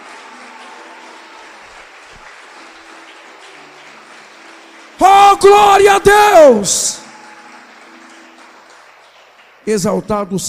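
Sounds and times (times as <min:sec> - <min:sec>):
audience applause: 0:00.0 - 0:10.4
speech: 0:05.4 - 0:07.0, 0:09.7 - 0:10.4.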